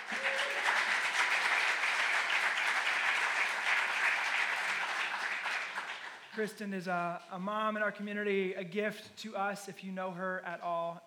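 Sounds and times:
audience applause: 0.0 - 6.4
speech: 6.4 - 11.0.

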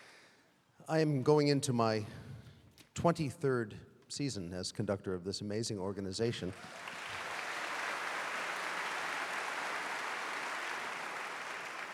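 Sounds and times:
speech: 0.9 - 2.2, 3.0 - 7.0
audience applause: 6.5 - 11.9.

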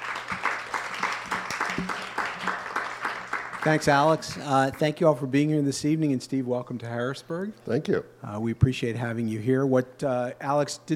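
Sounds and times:
audience applauding two speakers at a talk event in Harrisburg: 0.0 - 4.8
speech: 3.6 - 10.9.

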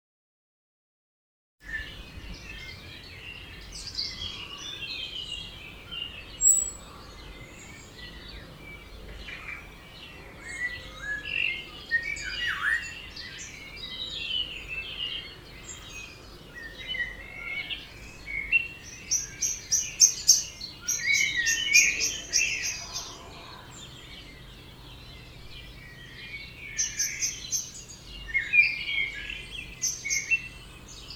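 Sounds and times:
birds in a dawn chorus: 1.6 - 31.1.

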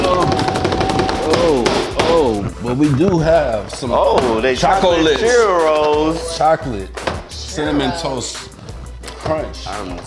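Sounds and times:
drum roll: 0.0 - 5.7
speech: 2.7 - 7.0, 7.6 - 8.6, 9.3 - 10.0.

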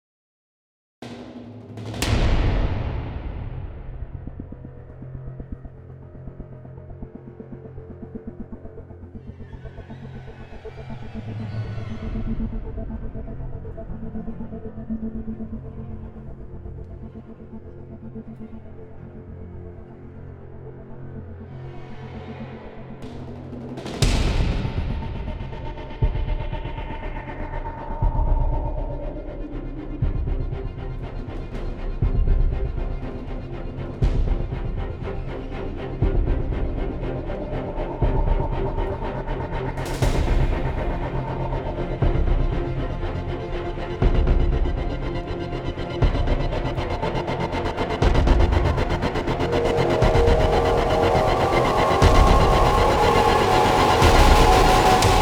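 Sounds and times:
tense string music: 1.4 - 55.2.

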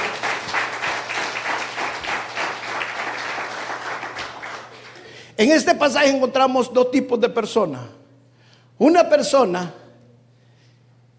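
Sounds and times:
crowd applauding: 0.0 - 5.2
speech: 5.4 - 8.0, 8.8 - 9.8.

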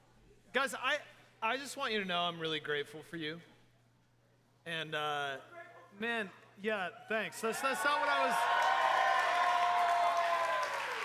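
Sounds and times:
speech: 0.5 - 3.5, 4.6 - 8.6
audience cheering and clapping: 7.4 - 11.0
whoops: 7.6 - 11.0.

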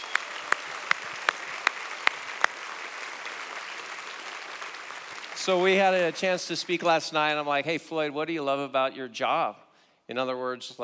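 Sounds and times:
audience claps: 0.0 - 7.0
speech: 5.4 - 10.8.

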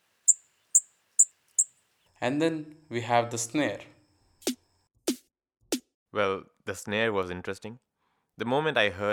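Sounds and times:
bird chirps used as hi-hat: 0.0 - 1.8
speech: 2.2 - 3.9, 6.2 - 9.1.

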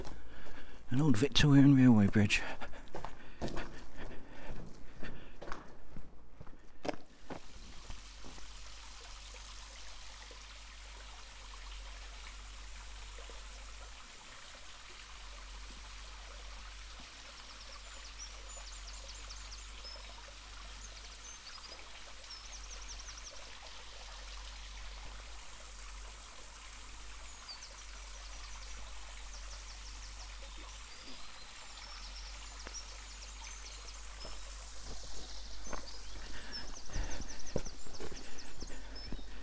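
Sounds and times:
birds chirping: 0.0 - 5.6, 17.2 - 25.2, 27.0 - 39.4
stream running through a sandstone gully: 0.0 - 39.4
speech: 0.9 - 2.7.

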